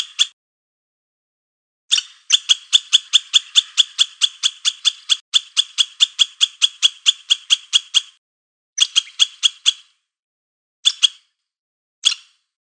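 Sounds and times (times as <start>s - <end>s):
squirrel giving rasping chatter notes: 1.9s - 8.2s, 8.8s - 9.9s.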